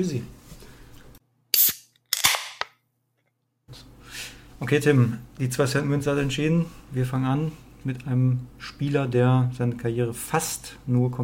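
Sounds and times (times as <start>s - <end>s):
speech: 0.0s - 0.4s, 4.6s - 11.2s
beer can hissing open: 1.5s - 2.3s.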